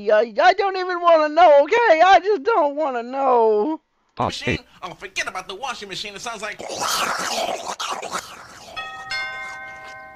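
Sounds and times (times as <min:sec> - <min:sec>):
speech: 0:00.0 - 0:08.2
doorbell ringing in two tones: 0:08.8 - 0:10.1.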